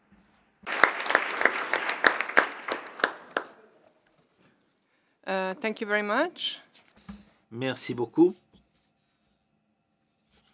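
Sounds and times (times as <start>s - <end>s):
seated crowd applause electing vice-presidents by acclamation: 0.6s - 4.0s
speech: 5.3s - 6.6s, 7.5s - 8.4s.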